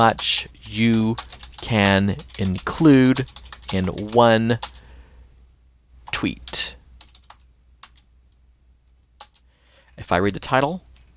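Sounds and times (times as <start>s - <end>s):
speech: 0.0s - 4.8s, 6.1s - 6.8s, 10.0s - 10.8s
typing on a computer keyboard while composing a tweet: 0.0s - 4.8s, 7.0s - 8.1s, 9.2s - 9.4s.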